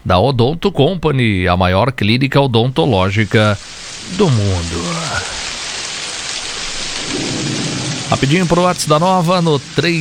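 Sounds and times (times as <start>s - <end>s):
speech: 0.1s - 5.4s, 8.1s - 9.9s
heavy rain: 2.3s - 9.9s.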